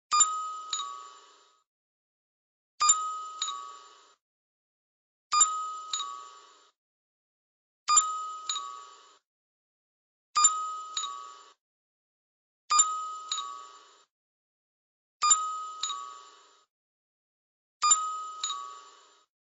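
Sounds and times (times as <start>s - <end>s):
chime at half speed: 0.1s - 1.6s, 2.8s - 4.2s, 5.3s - 6.7s, 7.9s - 9.2s, 10.4s - 11.6s, 12.7s - 14.0s, 15.2s - 16.7s, 17.8s - 19.3s.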